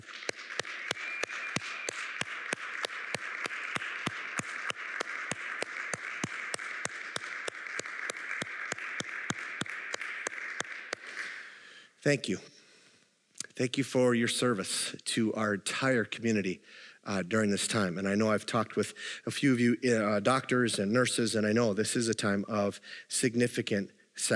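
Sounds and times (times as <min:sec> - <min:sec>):
small group applauding: 0:00.0 - 0:11.7
speech: 0:12.0 - 0:12.5, 0:13.6 - 0:24.3.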